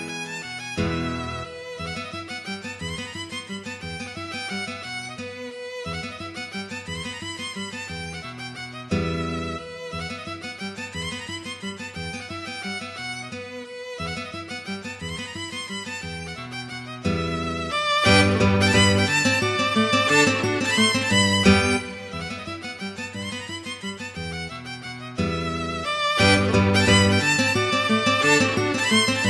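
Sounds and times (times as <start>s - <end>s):
waltz music: 0.8s - 1.7s, 17.1s - 22.9s, 25.2s - 29.2s.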